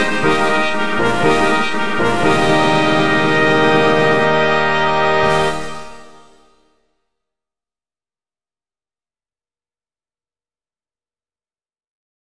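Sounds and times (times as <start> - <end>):
fanfare: 0.0 - 6.7.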